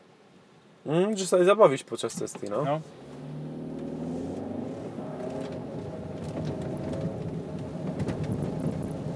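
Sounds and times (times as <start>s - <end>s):
speech: 0.8s - 3.0s
car engine drone on wet road: 2.2s - 9.1s
tires hissing on wet road: 2.7s - 9.1s.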